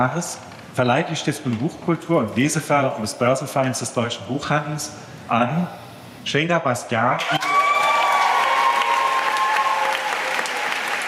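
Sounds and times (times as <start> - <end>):
speech: 0.0 - 7.6
audience cheering and applauding at award ceremony: 7.2 - 11.0.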